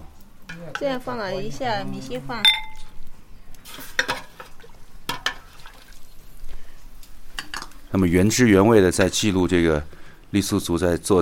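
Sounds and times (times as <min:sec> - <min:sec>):
low steady noise: 0:00.0 - 0:11.1
speech: 0:00.7 - 0:02.6, 0:07.9 - 0:11.1
pots and utensils clattering while cooking noodles: 0:02.4 - 0:02.9, 0:03.6 - 0:05.9, 0:07.4 - 0:07.8.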